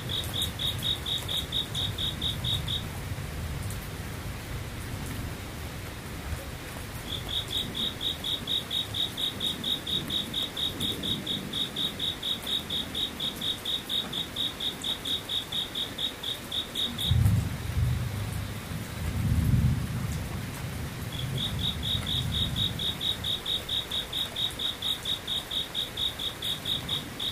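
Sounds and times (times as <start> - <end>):
insects calling in rapid buzzing trills: 0.0 - 2.9, 7.0 - 17.2, 21.0 - 27.3
soft rain-like hiss: 0.0 - 27.3.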